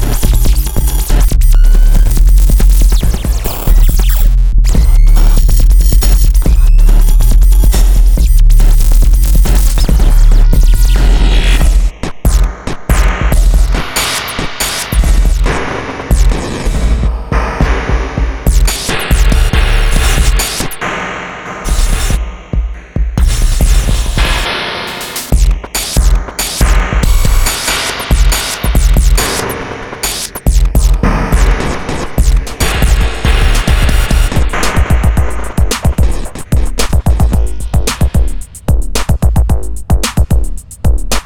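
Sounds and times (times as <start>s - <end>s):
breccy crunch glitch IDM mix: 0.0s - 41.2s.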